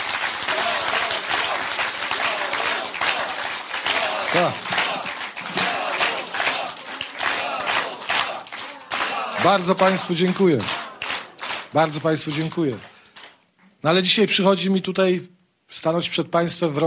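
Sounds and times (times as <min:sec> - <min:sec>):
warm audience applause: 0:00.0 - 0:13.4
speech: 0:04.3 - 0:04.8, 0:09.4 - 0:10.8, 0:11.7 - 0:12.9, 0:13.8 - 0:16.8.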